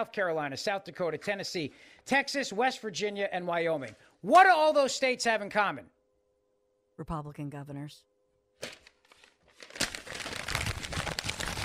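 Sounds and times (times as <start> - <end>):
speech: 0.0 - 6.0, 7.0 - 8.8
paper house deed being ripped up: 8.6 - 11.6.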